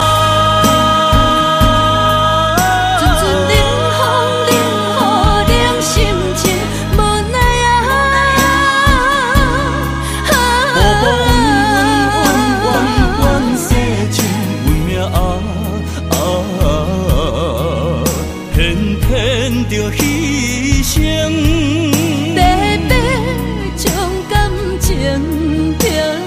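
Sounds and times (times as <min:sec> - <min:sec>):
Hokkien song: 0:00.0 - 0:26.1.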